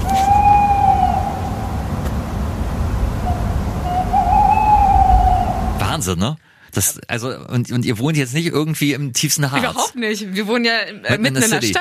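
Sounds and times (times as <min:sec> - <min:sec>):
owls hooting: 0:00.0 - 0:02.0, 0:03.1 - 0:06.0
speech: 0:06.1 - 0:11.7.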